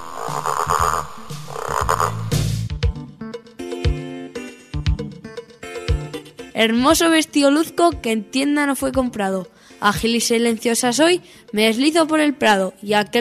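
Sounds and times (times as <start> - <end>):
frog croaking: 0.0 - 2.4
bright bouncy musical tune with plucked chiming notes: 0.7 - 13.2
speech: 6.6 - 13.2.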